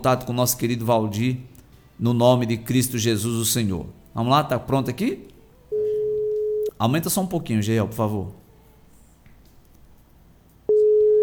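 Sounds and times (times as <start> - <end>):
speech: 0.0 - 5.3, 6.8 - 8.4
telephone calling tone: 5.7 - 6.8, 10.7 - 11.2.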